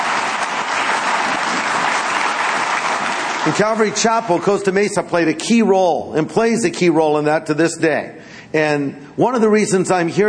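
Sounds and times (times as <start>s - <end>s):
audience applause: 0.0s - 4.3s
speech: 3.4s - 10.2s.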